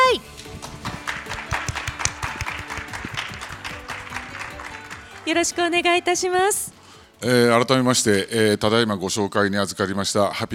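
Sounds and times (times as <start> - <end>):
audience applause welcoming a speaker: 0.4 - 5.6
speech: 5.3 - 10.5.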